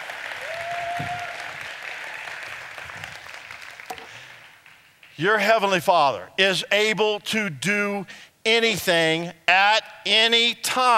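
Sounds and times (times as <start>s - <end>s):
audience applause: 0.0s - 5.2s
speech: 5.2s - 10.9s.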